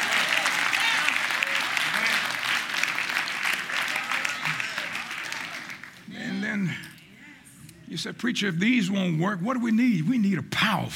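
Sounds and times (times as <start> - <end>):
audience clapping hands during praise break: 0.0 - 6.1
speech: 8.0 - 10.9.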